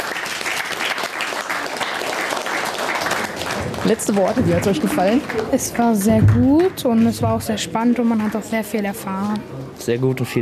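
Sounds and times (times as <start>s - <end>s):
applause: 0.0s - 7.1s, 7.9s - 8.6s
speech: 3.9s - 10.3s.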